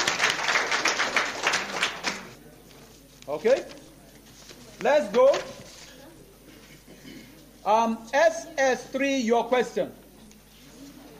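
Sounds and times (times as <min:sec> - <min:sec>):
audience applause: 0:00.0 - 0:02.4
speech: 0:03.4 - 0:03.8, 0:04.8 - 0:05.6, 0:07.6 - 0:10.0.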